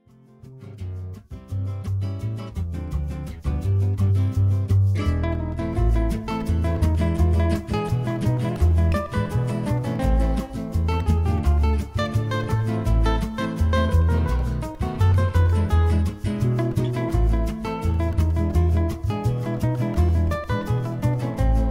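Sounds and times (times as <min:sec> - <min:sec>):
gypsy music: 0:00.1 - 0:21.6.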